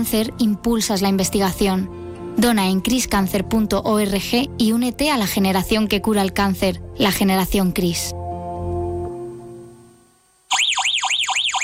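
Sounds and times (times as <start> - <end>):
speech: 0.0 - 8.2
Verizon alarm tone: 10.5 - 11.6.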